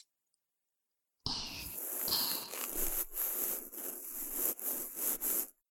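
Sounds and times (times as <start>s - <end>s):
ear pick cleaning right ear binaural microphone: 1.5s - 5.5s.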